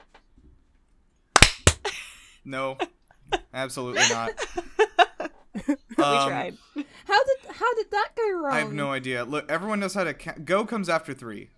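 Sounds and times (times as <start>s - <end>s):
group clapping together to sync recording: 1.4s - 1.8s
laughter: 1.9s - 9.1s
speech: 2.4s - 4.9s, 5.6s - 11.5s.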